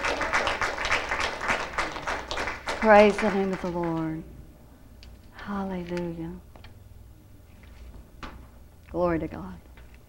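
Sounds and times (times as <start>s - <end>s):
church congregation clapping hands rhythmically: 0.0s - 4.2s
speech: 2.8s - 4.3s, 5.5s - 6.5s, 8.9s - 9.7s.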